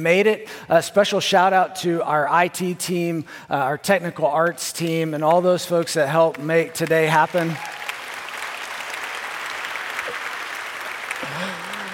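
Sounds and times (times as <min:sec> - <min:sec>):
speech: 0:00.0 - 0:07.8
audience applause: 0:07.0 - 0:11.9.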